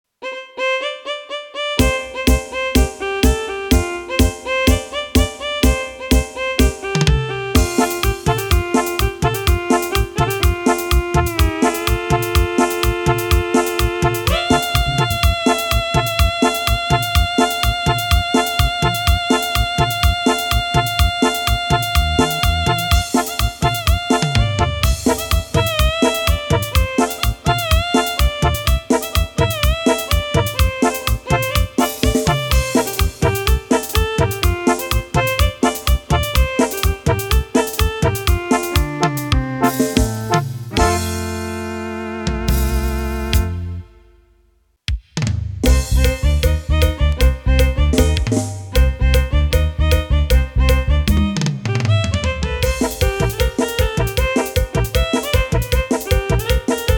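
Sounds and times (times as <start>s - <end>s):
cumbia music: 0.2s - 44.3s, 45.6s - 56.9s.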